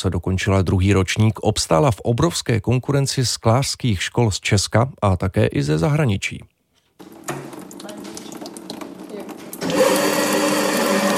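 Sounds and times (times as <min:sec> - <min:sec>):
speech: 0:00.0 - 0:06.5
glass grinding machine running: 0:09.6 - 0:11.1.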